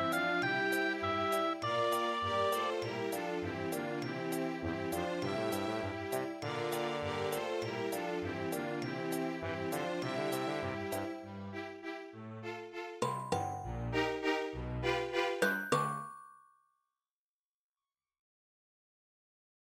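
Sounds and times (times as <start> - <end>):
MIDI town music: 0.0 - 15.6.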